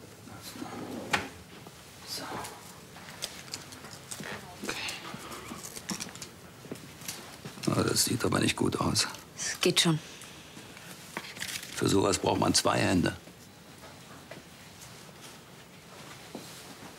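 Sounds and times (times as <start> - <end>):
drawer sliding open: 0.6 - 1.3
speech: 8.2 - 10.1, 11.9 - 13.3.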